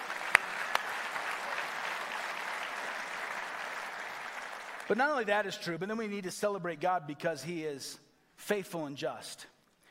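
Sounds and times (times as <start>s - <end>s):
audience applause: 0.0s - 5.0s
speech: 4.9s - 9.5s.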